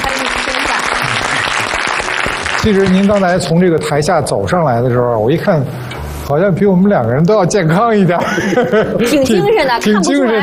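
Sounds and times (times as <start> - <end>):
studio audience applause welcoming a guest onto the stage: 0.0 - 3.5
speech: 2.6 - 10.4
laughter: 7.8 - 10.4.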